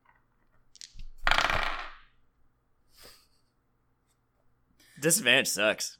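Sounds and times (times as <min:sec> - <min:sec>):
twenty-sided die rolled for a save in a tabletop role-playing game: 0:01.2 - 0:02.2
speech: 0:05.0 - 0:05.9.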